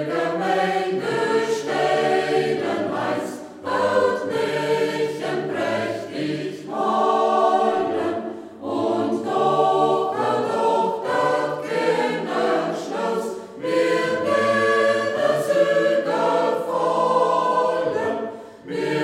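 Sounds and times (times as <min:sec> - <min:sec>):
choir singing: 0:00.0 - 0:19.0.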